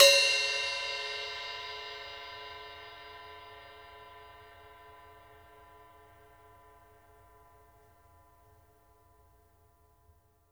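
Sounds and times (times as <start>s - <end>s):
hi-hats played with sticks: 0.0s - 2.0s.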